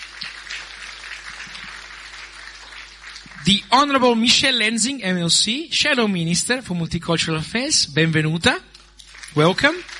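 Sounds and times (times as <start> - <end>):
crowd applause: 0.0 - 3.7, 9.1 - 9.9
speech: 3.4 - 8.7, 9.3 - 9.9.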